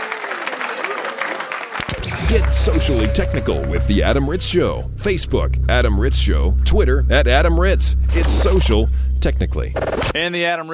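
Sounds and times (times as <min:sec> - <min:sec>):
sustained audience applause: 0:00.0 - 0:01.8
speech: 0:02.3 - 0:10.7.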